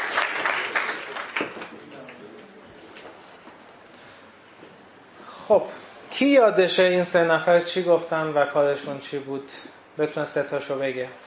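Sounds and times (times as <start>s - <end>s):
audience applause: 0.0s - 2.2s
speech: 5.5s - 11.2s.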